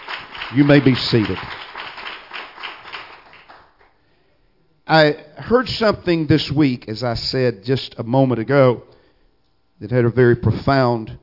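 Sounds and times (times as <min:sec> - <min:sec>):
audience clapping: 0:00.0 - 0:04.0
speech: 0:00.5 - 0:01.6, 0:04.9 - 0:08.9, 0:09.8 - 0:11.2.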